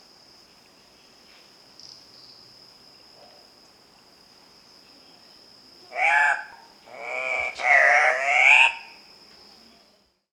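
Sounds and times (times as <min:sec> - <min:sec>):
Andean cock-of-the-rock Rupicola peruvianus calling: 0:05.9 - 0:09.0.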